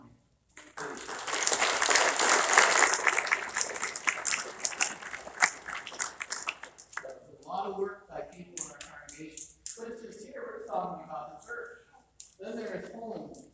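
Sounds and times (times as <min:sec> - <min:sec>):
audience applause: 0:00.6 - 0:07.1
person talking: 0:07.0 - 0:13.5.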